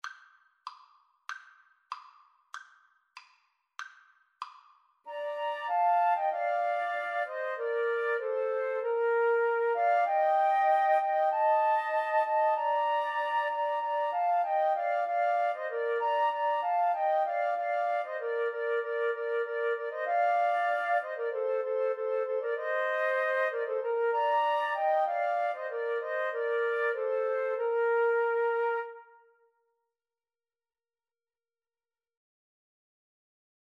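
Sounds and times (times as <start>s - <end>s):
flute trio playing a Christmas carol: 5.1s - 29.3s.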